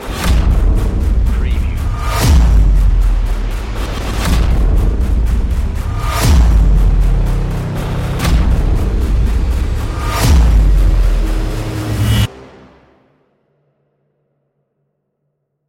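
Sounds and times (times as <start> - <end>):
synthesizer music: 1.2 - 13.2.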